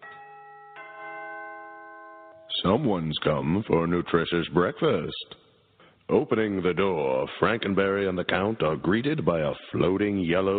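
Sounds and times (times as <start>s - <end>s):
doorbell ringing: 0.0s - 2.6s
speech: 2.6s - 5.4s, 6.1s - 10.5s.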